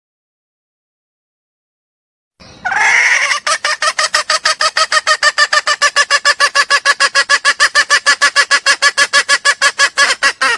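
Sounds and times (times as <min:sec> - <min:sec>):
junglefowl squawking and clucking: 0:02.5 - 0:10.5.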